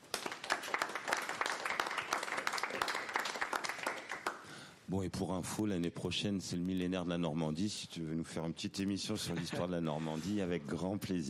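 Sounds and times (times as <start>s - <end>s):
audience applause: 0.0s - 4.4s
speech: 4.9s - 11.2s.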